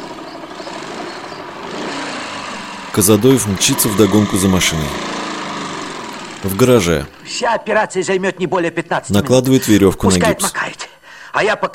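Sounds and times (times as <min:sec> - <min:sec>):
helicopter flying over forest: 0:00.0 - 0:07.4
speech: 0:02.9 - 0:05.2, 0:06.4 - 0:10.6, 0:11.4 - 0:11.7.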